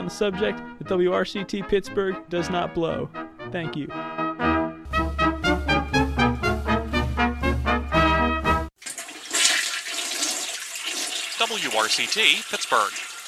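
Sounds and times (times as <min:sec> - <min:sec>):
speech: 0:00.1 - 0:04.2, 0:11.5 - 0:13.1
tonal music: 0:00.2 - 0:08.7
toilet flushing: 0:08.8 - 0:13.2.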